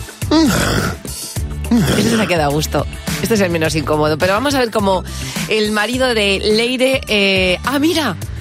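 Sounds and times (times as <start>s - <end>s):
person snoring loudly at night: 0.2s - 2.3s
speech: 0.3s - 1.0s, 1.7s - 8.3s.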